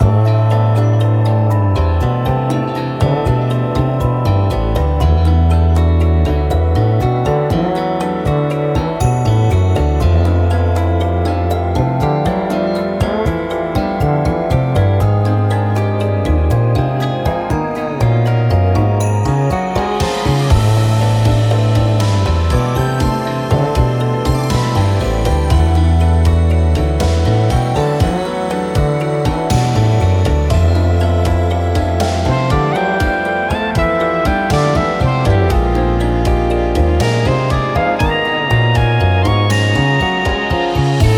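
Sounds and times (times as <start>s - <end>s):
background music loop: 0.0s - 41.1s.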